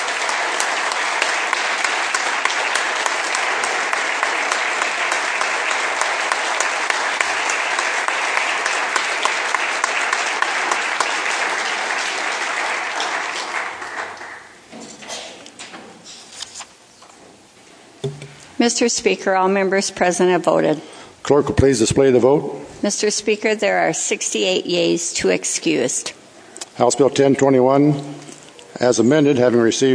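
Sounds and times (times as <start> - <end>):
applause in a legislative chamber welcoming homeschool students: 0.0 - 14.6
speech: 18.6 - 26.2, 26.8 - 28.2, 28.8 - 29.9.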